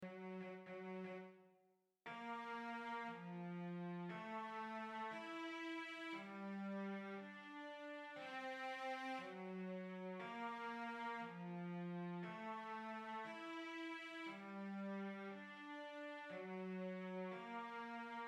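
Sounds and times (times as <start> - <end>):
cello: 0.0 - 18.2.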